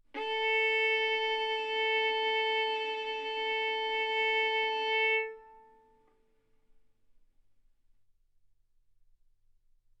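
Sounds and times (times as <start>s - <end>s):
violin arco on A string: 0.1s - 6.1s.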